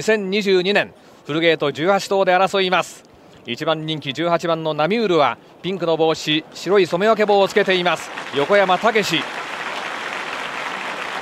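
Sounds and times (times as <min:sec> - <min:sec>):
speech: 0:00.0 - 0:09.4
racecourse crowd applauding: 0:07.2 - 0:11.2.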